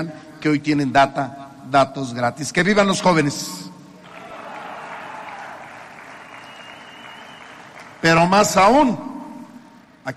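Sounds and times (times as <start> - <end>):
speech: 0.0 - 3.7, 8.0 - 9.1
audience clapping: 4.0 - 8.5.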